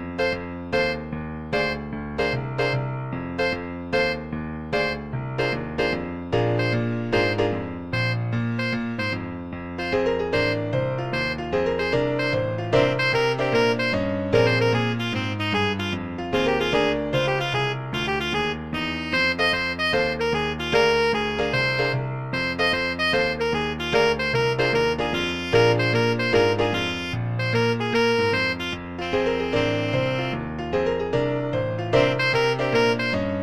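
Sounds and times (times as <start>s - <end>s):
saxophone playing a shuffle: 0.2s - 33.4s.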